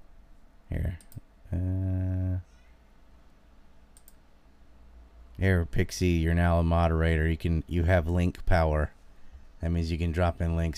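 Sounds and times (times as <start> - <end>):
low hum: 0.0 - 10.7
computer mouse clicks: 4.0 - 4.2
speech: 5.4 - 9.0, 9.6 - 10.7.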